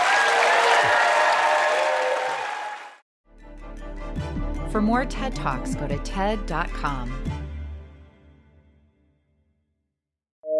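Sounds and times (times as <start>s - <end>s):
audience applause: 0.0s - 3.0s
speech: 4.7s - 7.4s.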